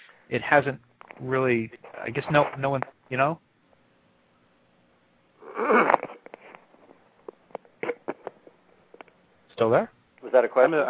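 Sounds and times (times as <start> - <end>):
speech: 0.3 - 3.5, 9.6 - 10.8
harsh raspy throat clearing: 7.8 - 8.4.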